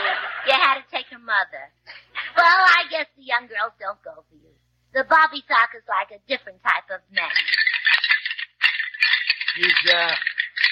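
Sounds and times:
speech: 1.2s - 7.6s, 9.6s - 10.3s
rattling bones clacking: 7.3s - 10.7s.

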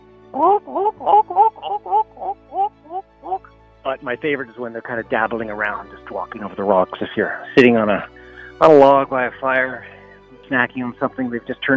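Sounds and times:
person vocally imitating gulls by the ocean: 0.3s - 3.5s
speech: 0.4s - 2.0s, 3.9s - 9.9s, 10.5s - 11.7s.

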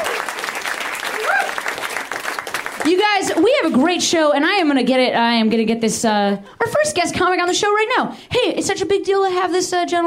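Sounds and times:
audience applause: 0.0s - 3.4s
faint whoop: 1.1s - 1.7s
speech: 2.8s - 10.0s.

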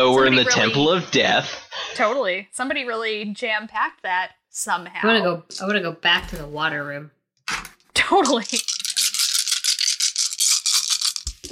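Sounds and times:
speech: 0.0s - 7.2s, 8.0s - 8.7s
many dice shaken together in a container: 8.2s - 11.4s.

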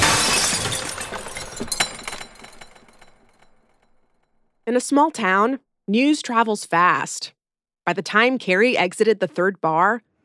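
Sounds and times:
tinkling glass shards: 0.0s - 3.5s
billiard ball shattering bar mirror glass: 0.0s - 4.0s
speech: 4.7s - 10.1s.

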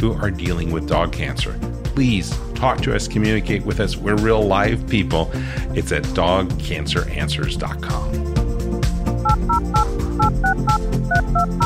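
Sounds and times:
speech: 0.0s - 8.3s
loud music: 0.1s - 11.6s
telephone touch-tone dialing beeps: 9.2s - 11.6s.

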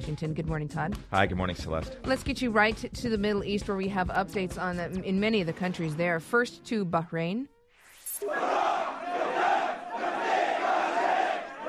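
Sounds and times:
speech: 0.1s - 7.5s, 8.2s - 9.0s
protest crowd chanting: 8.2s - 11.6s.

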